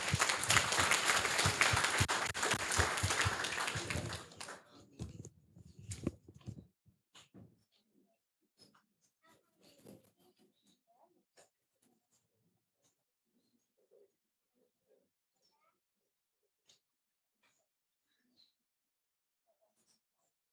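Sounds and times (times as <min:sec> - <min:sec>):
audience clapping: 0:00.0 - 0:04.8.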